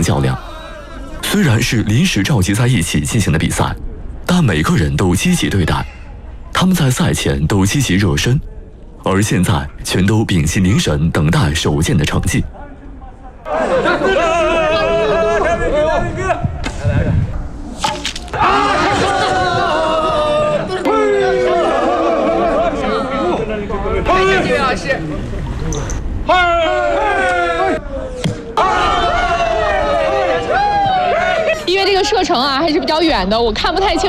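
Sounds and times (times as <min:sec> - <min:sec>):
speech: 0:01.3 - 0:06.0, 0:06.6 - 0:12.6, 0:32.2 - 0:34.0
crowd cheering at archery contest: 0:13.4 - 0:17.0, 0:18.2 - 0:33.0.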